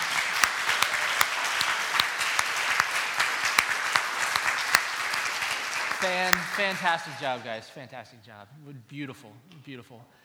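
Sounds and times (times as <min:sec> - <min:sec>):
round of applause: 0:00.0 - 0:07.3
speech: 0:06.0 - 0:10.2.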